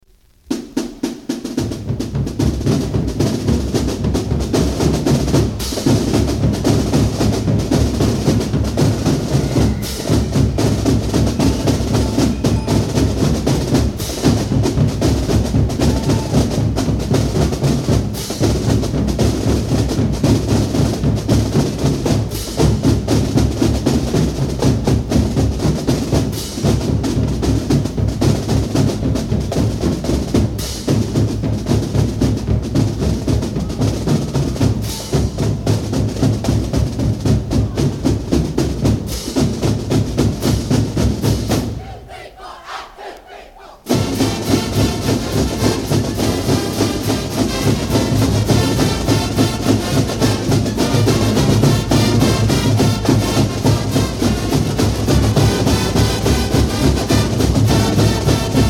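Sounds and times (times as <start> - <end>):
opening drum cadence: 0.1 - 58.6
fight song: 0.5 - 18.5, 41.5 - 58.6.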